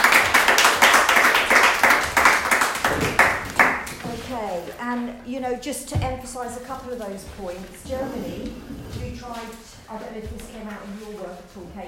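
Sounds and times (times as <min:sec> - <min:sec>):
round of applause: 0:00.0 - 0:04.0
speech: 0:05.4 - 0:11.8.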